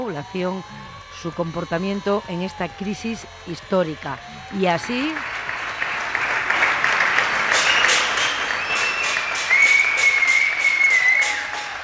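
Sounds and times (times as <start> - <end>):
speech: 0.1 - 5.5
Spaniards clapping from homes for healthcare workers: 4.2 - 11.8
sustained high whistle-like tone: 7.5 - 11.8.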